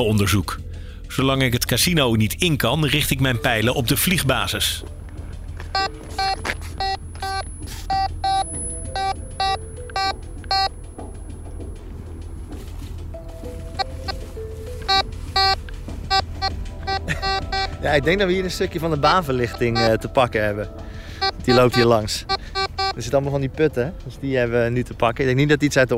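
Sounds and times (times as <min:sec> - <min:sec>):
speech: 0:00.0 - 0:05.0, 0:17.9 - 0:20.8, 0:21.5 - 0:22.4, 0:23.0 - 0:25.9
metal detector beeping: 0:05.7 - 0:11.8, 0:13.8 - 0:14.2, 0:14.8 - 0:18.0, 0:19.4 - 0:20.0, 0:21.2 - 0:23.0.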